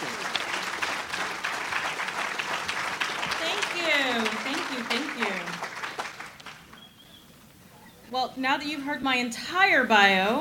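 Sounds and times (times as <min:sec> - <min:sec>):
audience applause welcoming a guest speaker at a Wyoming Republican evening event: 0:00.0 - 0:06.9
speech: 0:08.2 - 0:10.4.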